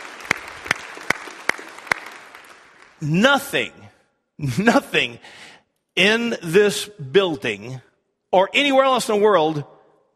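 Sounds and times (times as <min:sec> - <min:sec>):
audience applause: 0:00.0 - 0:03.0
speech: 0:03.0 - 0:03.8, 0:04.4 - 0:09.7.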